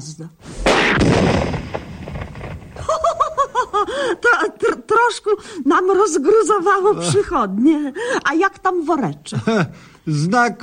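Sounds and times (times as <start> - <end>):
speech: 0.0 - 1.4, 4.0 - 10.6
old gas cylinder exploding with a loud sharp boom: 0.4 - 3.7
laughter: 2.8 - 4.9.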